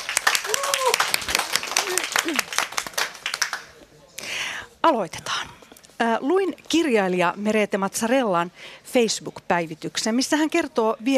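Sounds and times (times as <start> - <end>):
audience applause: 0.0 - 3.8
speech: 2.2 - 2.6, 4.9 - 11.1.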